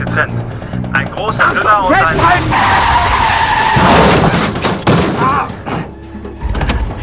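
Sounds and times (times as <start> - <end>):
speech: 0.2 - 4.4
smoking car's tyres screeching as it skids to a halt: 1.7 - 6.9.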